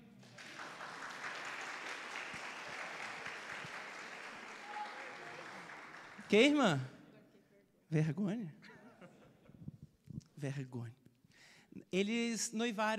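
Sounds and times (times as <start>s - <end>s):
applause: 0.0s - 6.9s
speech: 6.3s - 6.9s, 7.9s - 8.6s, 10.4s - 11.0s, 11.9s - 12.9s.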